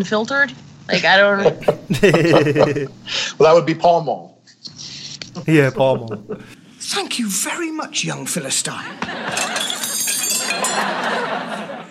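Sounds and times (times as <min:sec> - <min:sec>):
speech: 0:00.0 - 0:04.3, 0:05.4 - 0:09.7, 0:10.5 - 0:11.8
laughter: 0:01.4 - 0:03.0, 0:05.8 - 0:06.6, 0:08.9 - 0:11.8
metal silverware falling out and clattering: 0:09.3 - 0:11.2.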